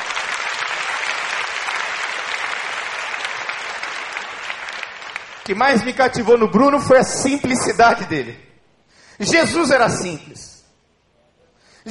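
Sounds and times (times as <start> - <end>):
large crowd applauding: 0.0 - 6.1
speech: 5.5 - 8.5, 9.2 - 10.5.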